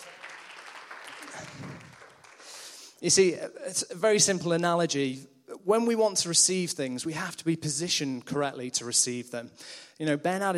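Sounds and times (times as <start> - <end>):
audience applause: 0.0 - 2.7
speech: 3.0 - 10.5.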